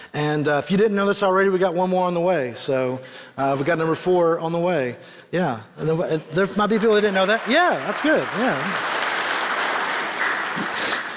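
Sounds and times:
speech: 0.1s - 9.0s
audience applause: 6.6s - 11.1s.

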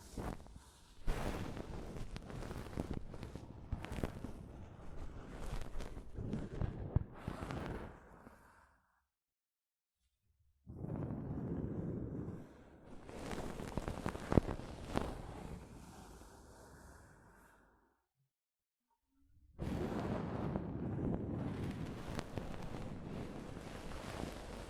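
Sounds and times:
soft fabric brushing against a microphone: 0.0s - 8.0s, 10.8s - 16.2s, 19.6s - 24.6s.

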